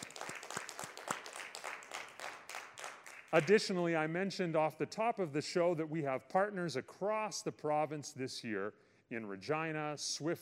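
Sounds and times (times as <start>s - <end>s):
round of applause from a crowd: 0.0s - 3.5s
speech: 3.3s - 10.4s.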